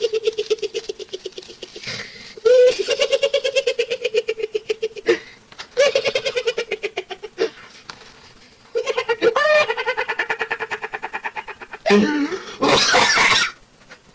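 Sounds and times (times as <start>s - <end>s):
Chinese man laughing: 0.0s - 7.5s, 8.8s - 12.9s.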